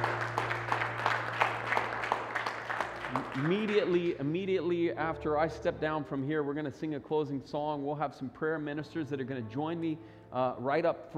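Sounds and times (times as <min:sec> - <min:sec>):
crowd applauding: 0:00.0 - 0:04.6
speech: 0:03.4 - 0:11.1.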